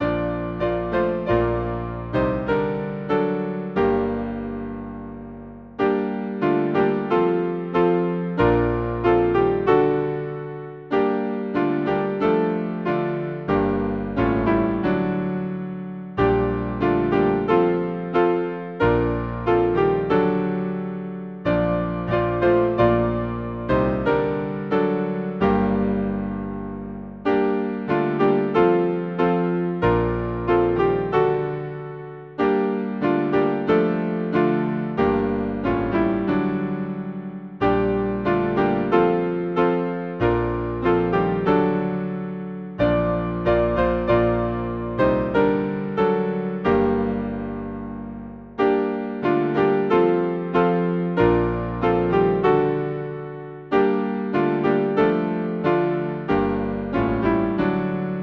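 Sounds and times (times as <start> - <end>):
hymn on piano: 0.0 - 58.2.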